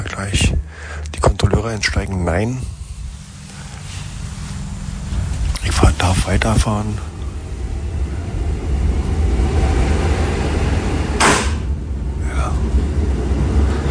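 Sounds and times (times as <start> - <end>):
old train rumbling: 0.0 - 13.8
speech: 0.2 - 0.6, 1.6 - 2.8, 5.8 - 7.1
hissing burst: 2.5 - 6.2.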